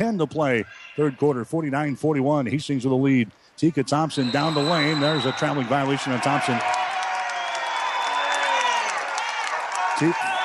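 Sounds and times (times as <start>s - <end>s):
speech: 0.0s - 6.8s, 10.0s - 10.3s
basketball fans applauding: 4.2s - 10.4s.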